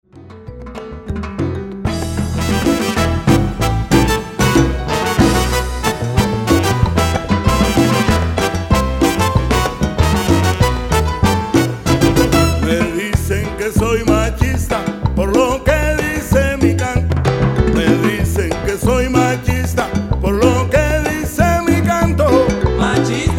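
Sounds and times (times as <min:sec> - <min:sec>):
Cuban salsa band playing: 0:00.1 - 0:23.3.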